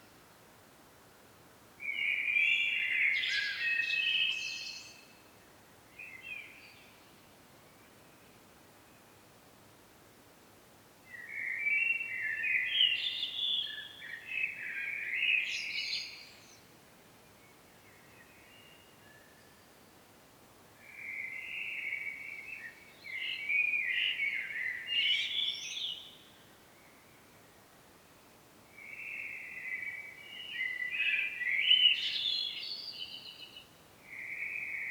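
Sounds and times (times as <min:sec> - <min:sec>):
common blackbird song: 0:01.8 - 0:05.2, 0:11.1 - 0:16.7, 0:17.4 - 0:19.8, 0:20.8 - 0:27.4, 0:28.7 - 0:34.8.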